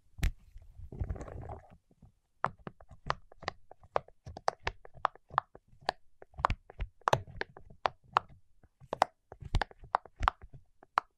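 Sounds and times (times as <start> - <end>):
wax-coated fingertips tapping and knocking: 2.4 - 11.1.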